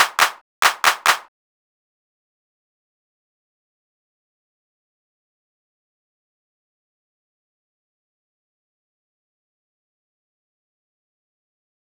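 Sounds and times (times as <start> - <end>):
hand clap: 0.0 - 1.3.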